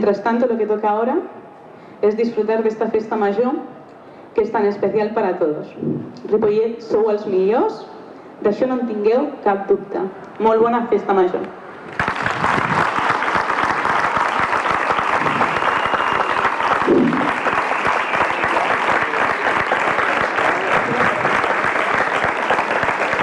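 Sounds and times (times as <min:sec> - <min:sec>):
speech: 0:00.0 - 0:01.4, 0:02.0 - 0:03.8, 0:04.4 - 0:12.0
large crowd applause in a town square: 0:11.9 - 0:23.2.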